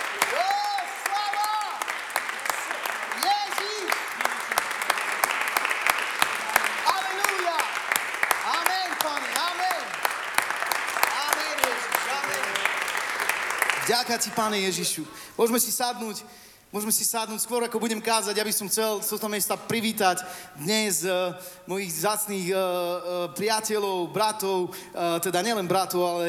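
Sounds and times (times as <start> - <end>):
church congregation clapping: 0.0 - 15.0
speech: 14.0 - 26.2.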